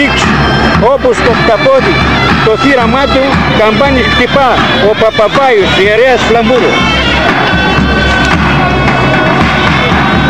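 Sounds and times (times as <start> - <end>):
speech: 0.0 - 7.4
large crowd applauding and shouting: 0.0 - 10.2.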